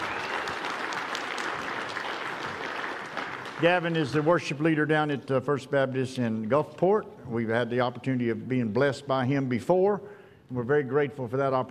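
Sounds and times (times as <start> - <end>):
audience applause: 0.0 - 4.4
speech: 3.6 - 11.7.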